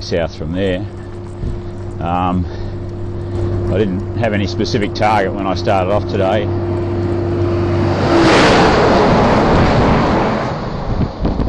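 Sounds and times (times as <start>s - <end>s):
road train truck passing: 0.0s - 11.4s
speech: 0.1s - 2.6s, 3.3s - 6.7s.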